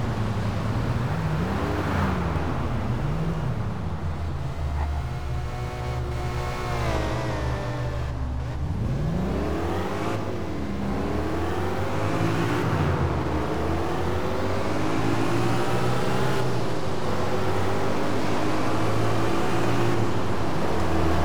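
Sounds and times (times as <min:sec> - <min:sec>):
Lexus LS 460 L car: 0:00.0 - 0:21.2.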